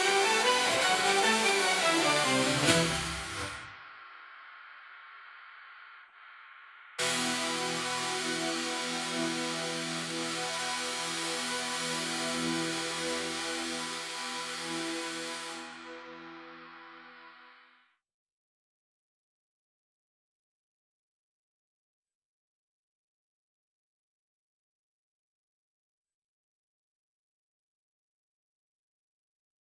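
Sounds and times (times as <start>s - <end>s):
synth: 0.0s - 17.8s.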